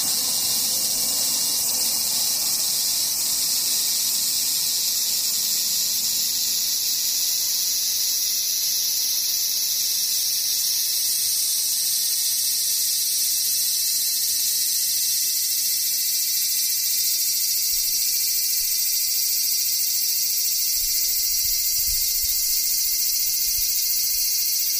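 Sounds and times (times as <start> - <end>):
cicadas buzzing: 0.0 - 24.7.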